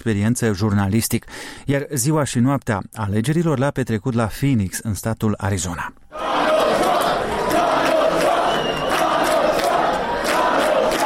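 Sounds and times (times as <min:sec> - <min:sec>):
speech: 0:00.0 - 0:06.0
crowd celebrating noisily at election night: 0:06.1 - 0:11.0
clapping: 0:06.8 - 0:11.0.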